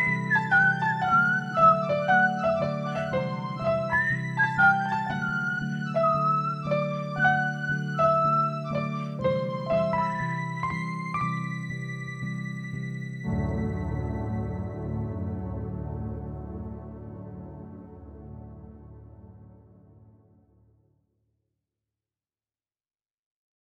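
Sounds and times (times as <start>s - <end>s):
whistling in the wind: 0.0s - 15.7s.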